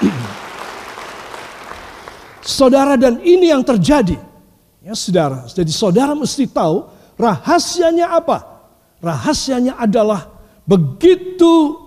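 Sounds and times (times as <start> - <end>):
audience applause: 0.0 - 2.4
speech: 2.6 - 11.8.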